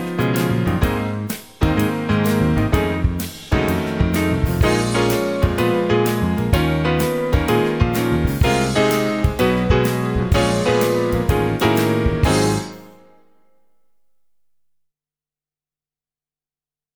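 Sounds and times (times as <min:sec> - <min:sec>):
bebop jazz tune: 0:00.0 - 0:13.2.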